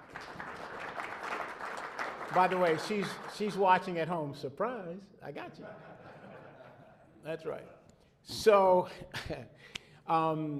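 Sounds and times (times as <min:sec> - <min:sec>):
audience applause: 0:00.0 - 0:03.9
speech: 0:02.3 - 0:06.0, 0:07.2 - 0:10.5
laughter: 0:05.6 - 0:07.2.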